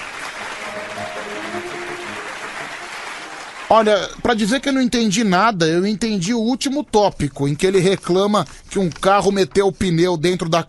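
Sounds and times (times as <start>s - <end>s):
crowd applause: 0.0s - 4.2s
speech: 3.7s - 10.6s.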